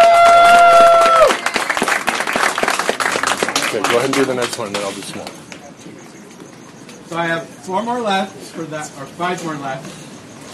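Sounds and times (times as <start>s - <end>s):
audience applause: 0.0s - 5.2s
speech: 4.0s - 5.4s, 7.1s - 10.0s.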